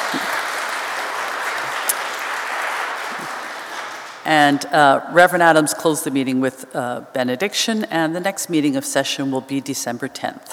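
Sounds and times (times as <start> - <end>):
audience applause: 0.0 - 4.3
speech: 4.3 - 10.5.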